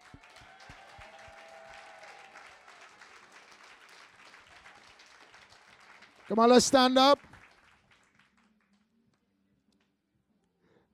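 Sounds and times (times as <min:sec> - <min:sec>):
audience clapping: 0:00.0 - 0:08.9
speech: 0:06.3 - 0:07.3.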